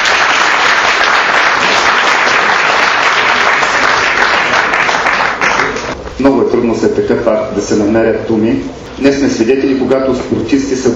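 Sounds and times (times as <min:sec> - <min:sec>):
crowd applauding: 0:00.0 - 0:06.0
speech: 0:06.2 - 0:10.9.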